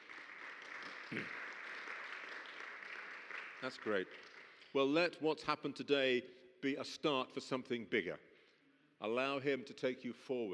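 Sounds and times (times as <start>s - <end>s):
audience applause: 0.0s - 4.7s
speech: 1.1s - 1.4s, 3.6s - 8.3s, 9.0s - 10.5s.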